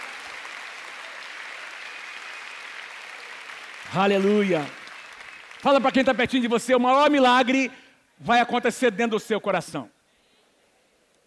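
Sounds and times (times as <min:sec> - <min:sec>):
audience applauding: 0:00.0 - 0:06.6
speech: 0:03.9 - 0:04.8, 0:05.6 - 0:10.0.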